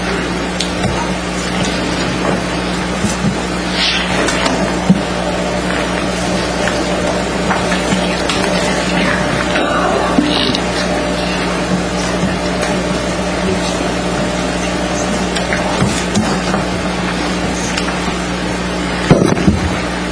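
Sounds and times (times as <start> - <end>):
motorized projection screen being lowered during a meeting: 0.0 - 20.1.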